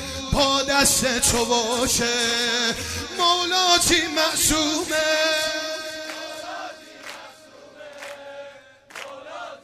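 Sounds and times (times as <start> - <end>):
speech: 0.4 - 5.4
mourners singing a droning chant: 2.8 - 9.6.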